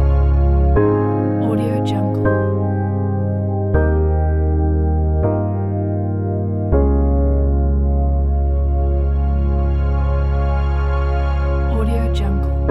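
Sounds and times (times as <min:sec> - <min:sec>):
inspiring ambient soundscape: 0:00.0 - 0:12.6.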